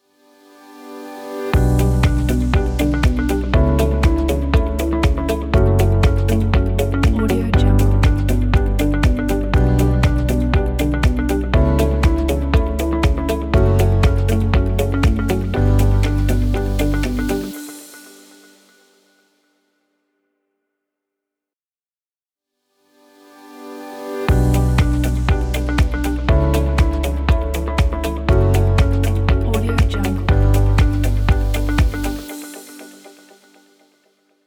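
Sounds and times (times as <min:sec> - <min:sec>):
corporate intro logo music: 0:01.5 - 0:18.6, 0:24.3 - 0:33.7.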